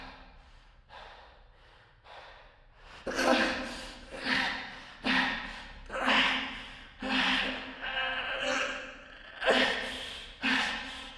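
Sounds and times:
woman vocalizing: 0:03.1 - 0:11.1.

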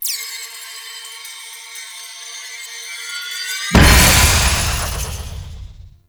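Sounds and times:
despawn sound effect: 0:03.8 - 0:06.0.

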